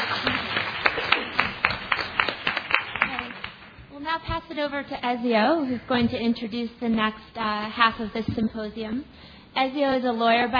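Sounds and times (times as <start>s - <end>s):
sparse applause from a symposium audience: 0.0s - 3.8s
low continuous noise: 0.0s - 10.5s
speech: 4.6s - 10.5s.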